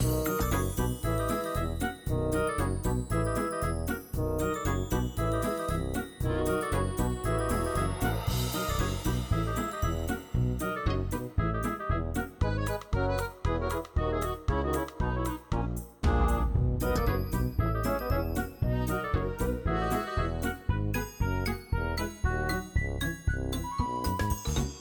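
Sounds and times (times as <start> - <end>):
fun music: 0.0 - 24.7.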